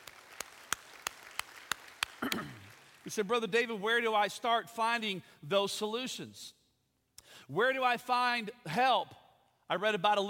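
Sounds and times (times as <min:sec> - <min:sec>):
congregation clapping hands in praise at a church service: 0:00.0 - 0:03.8
speech: 0:02.3 - 0:06.6, 0:07.4 - 0:10.2.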